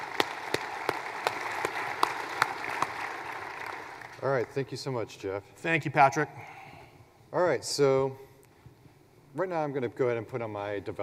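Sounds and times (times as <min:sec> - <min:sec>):
audience round of applause: 0:00.0 - 0:04.5
speech: 0:04.2 - 0:06.6, 0:07.3 - 0:08.2, 0:09.4 - 0:11.0.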